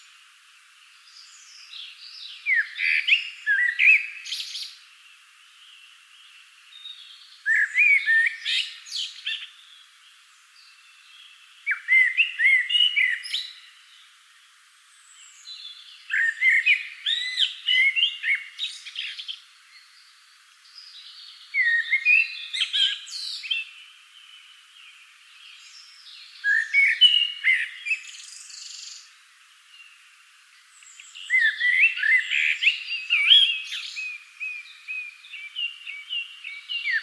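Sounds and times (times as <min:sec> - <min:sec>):
common blackbird singing: 0:01.1 - 0:04.7, 0:06.7 - 0:09.8, 0:10.6 - 0:13.7, 0:15.1 - 0:20.1, 0:20.7 - 0:23.9, 0:25.4 - 0:29.1, 0:30.8 - 0:37.0.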